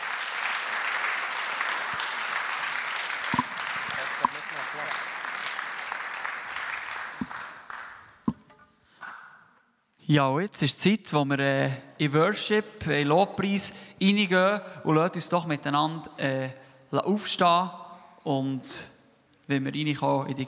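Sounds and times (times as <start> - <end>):
audience applause: 0.0 - 8.2
speech: 10.1 - 20.4.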